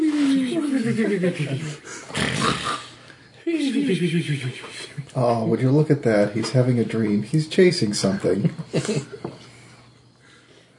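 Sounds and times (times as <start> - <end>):
laughter: 0.0 - 2.0, 3.4 - 5.2, 8.2 - 9.5
speech: 0.8 - 2.0, 3.6 - 9.4
person imitating comical snoring: 2.1 - 3.0.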